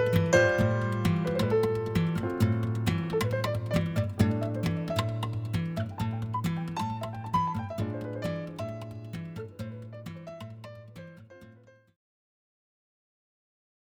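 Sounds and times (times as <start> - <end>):
interlude music: 0.0 - 10.9.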